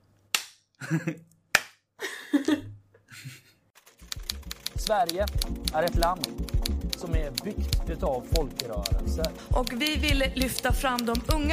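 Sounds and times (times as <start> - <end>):
laughter: 0.8 - 1.2
speech: 0.9 - 1.3, 4.8 - 11.5
self high-five hand slap: 1.5 - 1.8.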